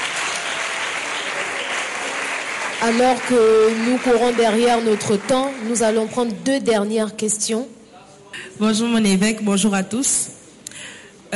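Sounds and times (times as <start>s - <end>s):
audience clapping at a church gathering honouring a bishop: 0.0s - 6.4s
speech: 2.8s - 7.8s, 8.6s - 10.4s.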